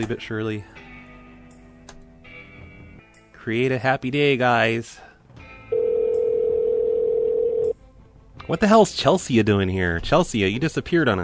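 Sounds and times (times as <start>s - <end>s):
speech: 0.0s - 0.8s, 3.4s - 5.1s, 8.5s - 11.2s
telephone dial tone after the caller hangs up: 5.7s - 7.7s.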